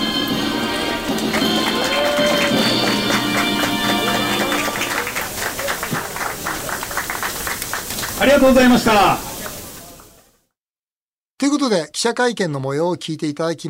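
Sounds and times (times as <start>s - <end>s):
applause at a ribbon-cutting ceremony: 0.1s - 10.4s
speech: 8.4s - 9.3s, 12.0s - 13.6s.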